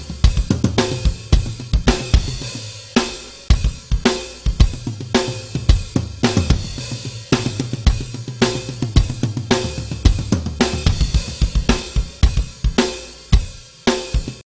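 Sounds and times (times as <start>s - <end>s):
intro drums: 0.0s - 14.5s.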